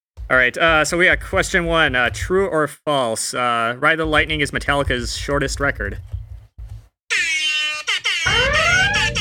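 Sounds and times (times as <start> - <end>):
speech: 0.3 - 6.2
air horn blast: 8.2 - 9.1.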